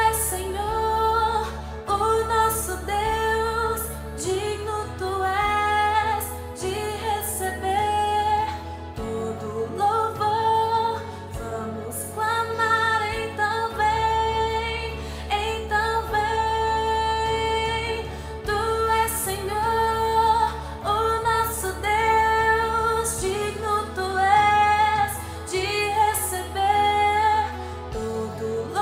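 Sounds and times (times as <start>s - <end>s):
mezzo-soprano guide vocal singing: 0.0s - 28.8s.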